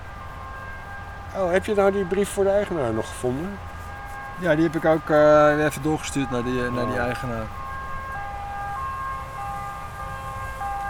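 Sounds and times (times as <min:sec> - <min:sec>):
emergency vehicle siren with two alternating high tones: 0:00.0 - 0:10.8
low rumbling traffic background: 0:00.0 - 0:10.8
speech: 0:01.4 - 0:03.7, 0:04.4 - 0:07.6.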